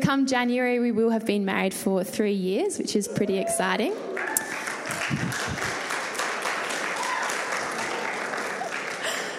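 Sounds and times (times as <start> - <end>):
speech: 0.1 - 4.3
audience applause: 4.1 - 9.3.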